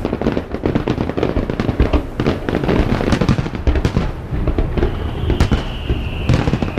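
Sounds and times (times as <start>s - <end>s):
fireworks booming and crackling: 0.0s - 6.7s.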